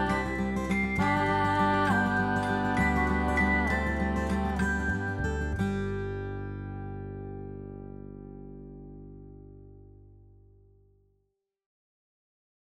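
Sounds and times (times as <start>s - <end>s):
instrumental music without vocals: 0.0s - 9.6s.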